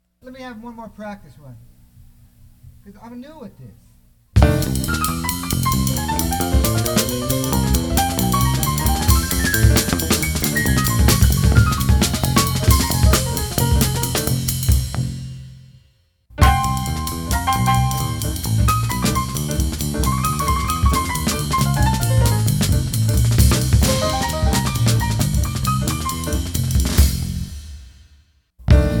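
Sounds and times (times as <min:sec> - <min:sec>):
fast jazz piano: 0:04.4 - 0:15.3, 0:16.4 - 0:27.6.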